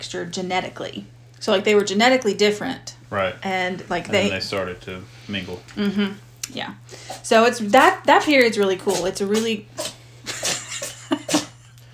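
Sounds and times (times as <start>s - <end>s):
speech: 0.0s - 9.9s
cat sneezing: 8.9s - 11.6s.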